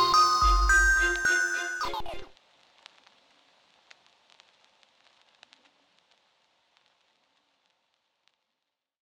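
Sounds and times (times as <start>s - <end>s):
trap beat: 0.0s - 2.3s.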